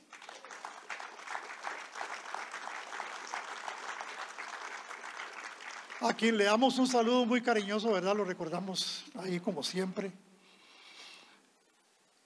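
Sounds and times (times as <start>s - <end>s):
audience applause: 0.0s - 7.1s
speech: 6.0s - 10.2s.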